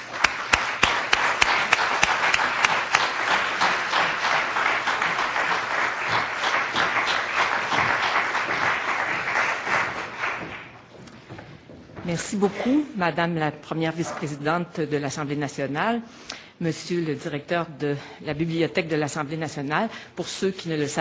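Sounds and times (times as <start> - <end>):
audience applause welcoming Lise Bissonnette at the National Assembly library: 0.0 - 10.9
speech: 12.1 - 20.9.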